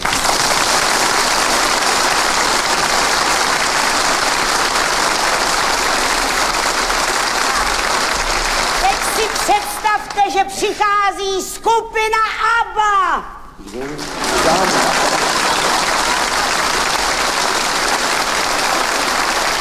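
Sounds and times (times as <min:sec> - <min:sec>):
audience applause for the orchestra: 0:00.0 - 0:10.2, 0:13.7 - 0:19.5
speech: 0:10.4 - 0:15.1
laughter: 0:13.8 - 0:16.5.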